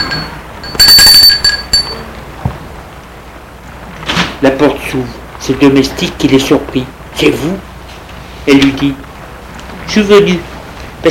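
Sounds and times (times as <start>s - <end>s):
doorbell ringing: 0.0s - 2.2s
speech: 4.4s - 7.7s, 8.4s - 9.0s, 9.9s - 11.0s.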